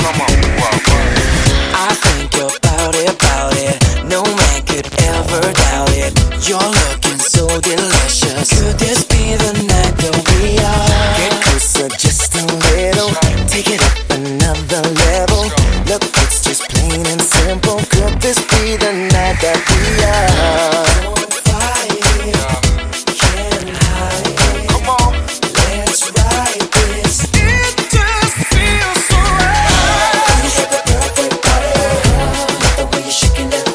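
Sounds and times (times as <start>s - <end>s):
pop music at 102 BPM: 0.0s - 33.7s.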